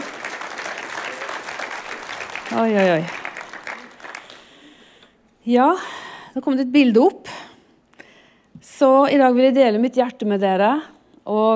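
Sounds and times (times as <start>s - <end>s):
audience applause: 0.0s - 4.7s
speech: 2.5s - 3.2s, 5.5s - 7.4s, 8.8s - 11.5s.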